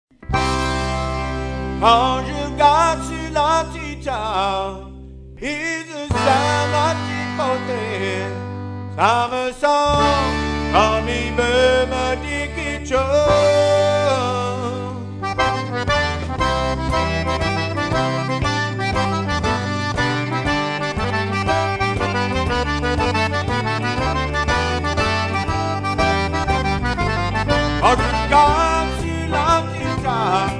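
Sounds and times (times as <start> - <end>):
waltz music: 0.2 - 4.8, 6.1 - 9.3, 10.0 - 30.5.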